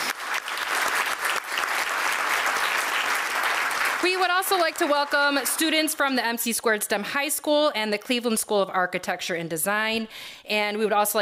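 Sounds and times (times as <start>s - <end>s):
audience applause: 0.0s - 5.8s
speech: 4.0s - 11.2s.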